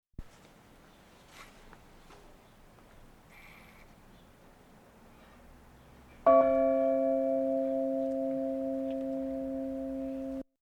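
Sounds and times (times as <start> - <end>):
bell ringing: 6.3 - 10.4.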